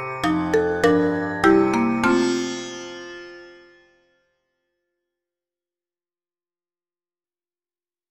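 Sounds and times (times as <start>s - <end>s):
xylorimba: 0.0s - 3.1s
sitar: 0.0s - 4.7s.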